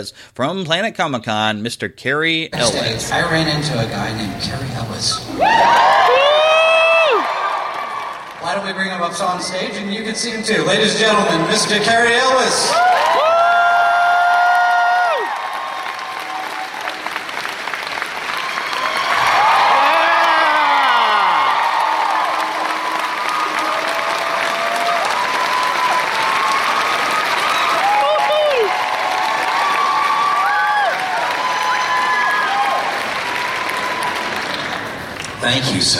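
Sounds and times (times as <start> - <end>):
speech: 0.0 - 6.2, 8.4 - 13.1, 35.5 - 35.9
crowd cheering and applauding: 5.3 - 10.1, 11.3 - 35.9.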